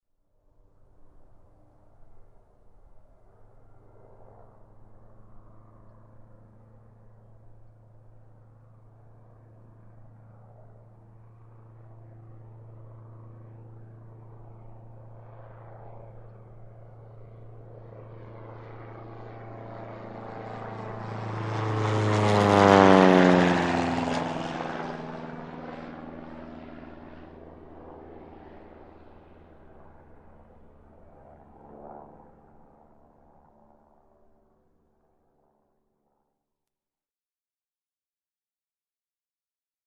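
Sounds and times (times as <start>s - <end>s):
biplane flying over: 0.2s - 36.2s.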